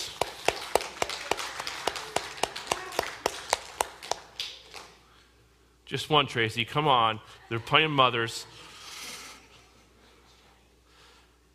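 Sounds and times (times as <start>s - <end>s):
applause: 0.0s - 5.0s
speech: 5.9s - 8.7s.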